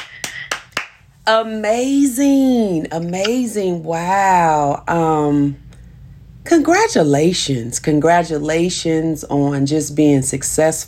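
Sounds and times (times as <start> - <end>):
hands clapping: 0.0 - 1.0
speech: 1.3 - 5.6, 6.5 - 10.8.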